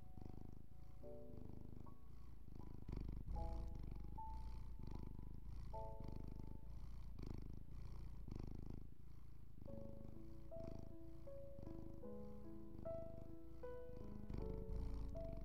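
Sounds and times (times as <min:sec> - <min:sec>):
calm music with soft sustained notes: 0:00.0 - 0:07.2, 0:09.6 - 0:15.4
cat purring: 0:00.0 - 0:15.4.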